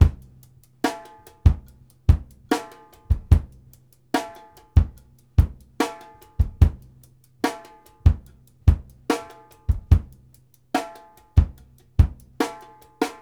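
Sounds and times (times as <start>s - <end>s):
funk kick drum: 0.0s - 0.6s, 1.4s - 3.8s, 4.7s - 7.0s, 8.1s - 10.4s, 11.4s - 13.2s.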